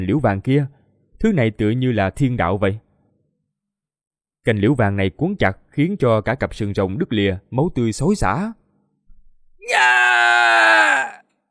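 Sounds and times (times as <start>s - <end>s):
speech: 0.0s - 2.8s, 4.4s - 8.6s, 9.6s - 11.2s
agonized scream: 9.6s - 11.3s.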